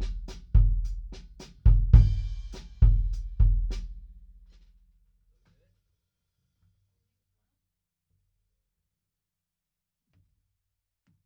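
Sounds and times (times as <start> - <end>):
kick drum: 0.0 - 4.8.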